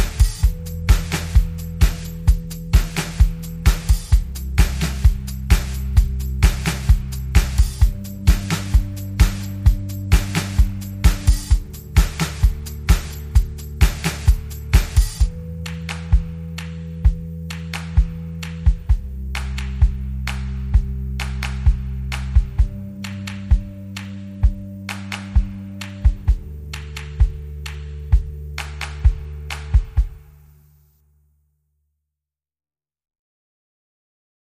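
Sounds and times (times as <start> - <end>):
drums: 0.0 - 16.4, 24.4 - 26.5, 28.0 - 30.2
bass: 0.0 - 31.7.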